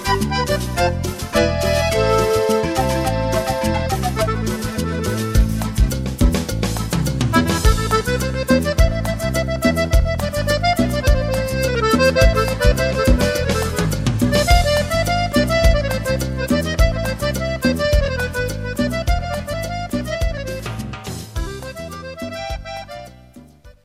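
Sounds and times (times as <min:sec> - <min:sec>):
accordion playing: 0:00.0 - 0:23.8.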